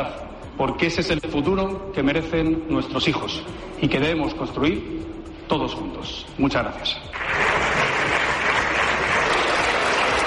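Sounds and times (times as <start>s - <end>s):
speech: 0.0s - 7.6s
applause in parliament from the bancada popular: 7.2s - 10.2s.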